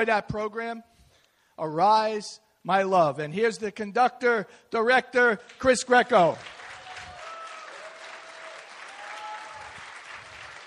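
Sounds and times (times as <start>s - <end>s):
speech: 0.0s - 0.9s, 1.6s - 6.6s
audience applause for choir: 6.0s - 10.6s.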